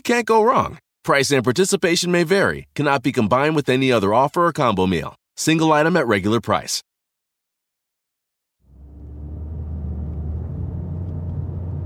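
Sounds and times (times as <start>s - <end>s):
speech: 0.0s - 6.9s
car driving through a small-town neighborhood near downtown Mapleshade: 8.6s - 11.8s.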